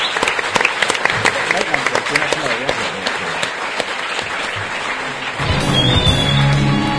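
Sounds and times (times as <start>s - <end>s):
audience applause: 0.0s - 6.8s.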